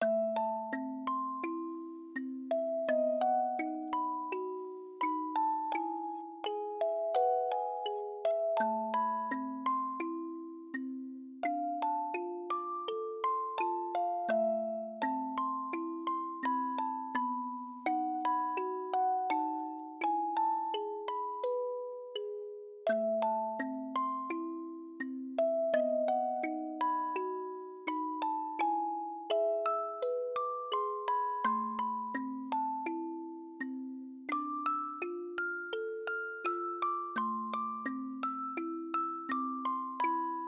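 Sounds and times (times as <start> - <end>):
music box: 0.0 - 40.4.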